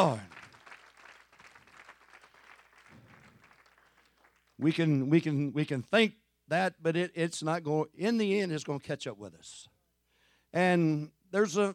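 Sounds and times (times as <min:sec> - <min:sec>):
speech: 0:00.0 - 0:00.3, 0:04.6 - 0:09.7, 0:10.5 - 0:11.7
audience clapping hands: 0:00.0 - 0:05.0.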